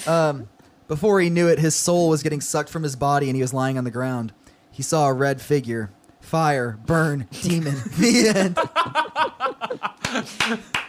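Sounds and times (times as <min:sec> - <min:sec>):
speech: 0:00.0 - 0:10.8
chuckling: 0:07.6 - 0:10.8
small group clapping: 0:10.0 - 0:10.8.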